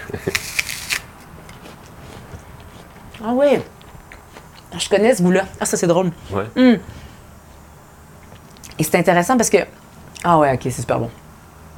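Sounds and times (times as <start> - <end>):
biting into a crisp apple: 0.1 - 4.7
chewing apple: 0.2 - 4.9, 8.2 - 8.8
speech: 3.2 - 3.8, 4.7 - 7.0, 8.8 - 11.2.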